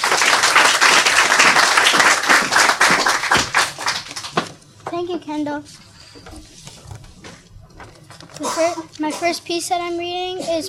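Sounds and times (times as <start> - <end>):
audience applause: 0.0 - 4.5
speech: 5.0 - 6.7, 8.4 - 10.6.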